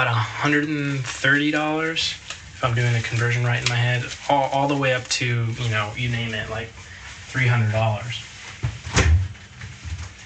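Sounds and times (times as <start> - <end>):
speech: 0.0 - 8.3
refrigerator door thump: 8.6 - 9.4.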